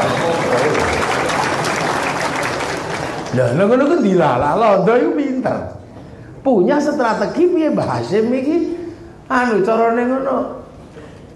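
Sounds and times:
audience clapping loudly: 0.0 - 4.1
speech: 3.4 - 5.8, 6.4 - 10.6.

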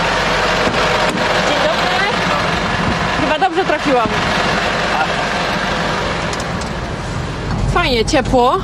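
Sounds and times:
snowplow gritter truck driving while spreading grit: 0.0 - 8.6
speech: 3.8 - 4.5, 7.8 - 8.6.

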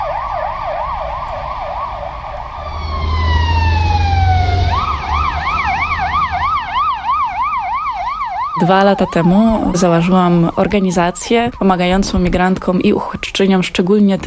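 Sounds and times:
ambulance siren: 0.0 - 13.7
speech: 8.6 - 14.2.

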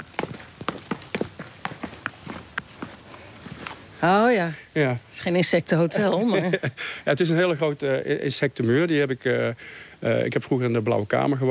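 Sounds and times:
footsteps going down a small flight of steps in a garden: 0.0 - 4.0
speech: 4.0 - 11.4.

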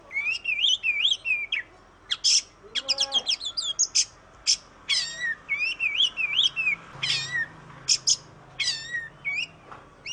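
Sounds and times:
Oriental magpie-robin song in masteran style: 0.1 - 10.1.

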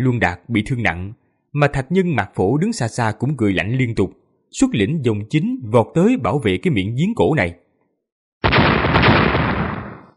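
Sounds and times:
speech: 0.0 - 7.6
repeated explosions: 8.4 - 10.1.

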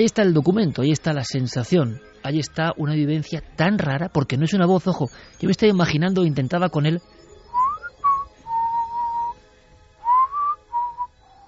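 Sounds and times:
speech: 0.0 - 7.2
person whistling: 7.5 - 9.4, 10.0 - 11.4.

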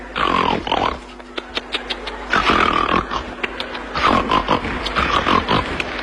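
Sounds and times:
man imitating loud pig-like snoring: 0.2 - 1.1, 2.3 - 3.3, 4.0 - 5.9.

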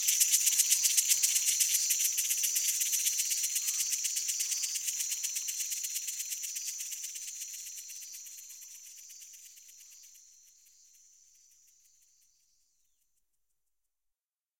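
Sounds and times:
cicada song: 0.0 - 10.2.

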